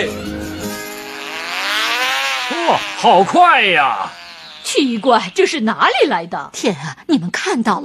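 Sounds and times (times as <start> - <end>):
remote-control model airplane engine buzzing: 0.4 - 5.9
speech: 2.7 - 7.8.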